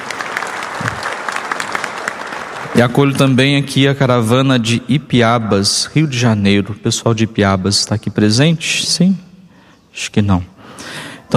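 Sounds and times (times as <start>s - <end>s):
church congregation applause welcoming visiting groups: 0.0s - 3.2s
speech: 2.8s - 9.2s, 10.0s - 11.3s.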